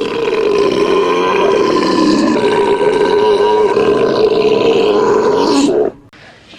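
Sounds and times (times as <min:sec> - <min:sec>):
loud belching in a contest: 0:00.0 - 0:06.0.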